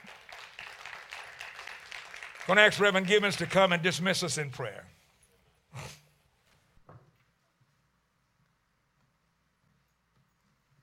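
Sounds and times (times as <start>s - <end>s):
audience clapping hands in praise: 0.0s - 4.7s
speech: 2.5s - 5.0s.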